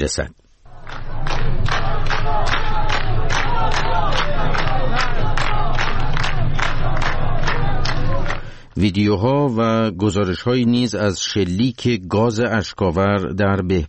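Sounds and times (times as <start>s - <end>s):
speech: 0.0s - 0.4s, 8.8s - 13.8s
crowd chanting protest slogans in Behbahan: 0.7s - 8.6s.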